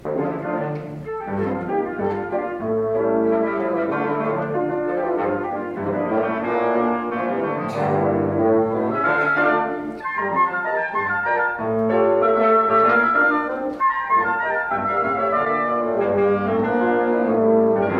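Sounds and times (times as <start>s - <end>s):
chamber music: 0.0s - 17.9s.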